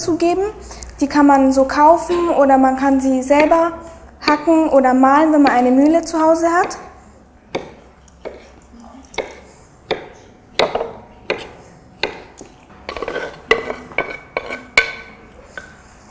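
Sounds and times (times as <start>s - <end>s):
speech: 0.0s - 6.8s
spoon stirring chopped hazelnuts into muesli in a bowl: 6.5s - 16.0s.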